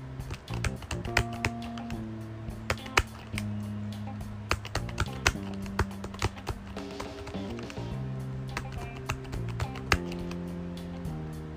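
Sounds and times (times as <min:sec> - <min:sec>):
low tonal hum: 0:00.0 - 0:11.5
keys pressed on a six-key braille writer: 0:00.2 - 0:02.0, 0:02.7 - 0:03.5, 0:04.5 - 0:07.9, 0:08.5 - 0:10.4.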